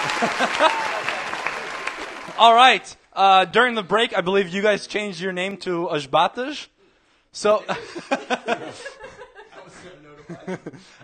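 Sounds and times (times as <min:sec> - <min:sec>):
laughter: 0:00.0 - 0:02.4, 0:07.5 - 0:11.0
audience applause: 0:00.0 - 0:02.8
speech: 0:00.2 - 0:01.0, 0:02.4 - 0:06.7, 0:07.3 - 0:09.2, 0:09.8 - 0:11.0.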